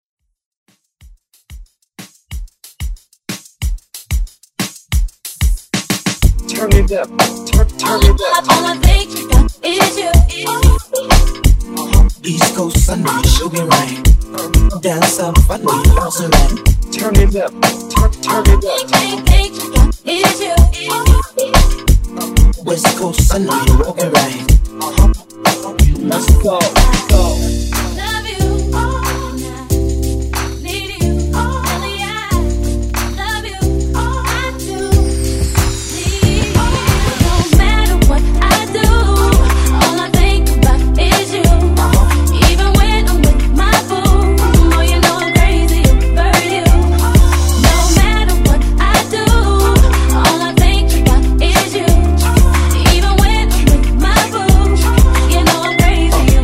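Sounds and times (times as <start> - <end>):
dancehall hype music: 3.3 - 56.4.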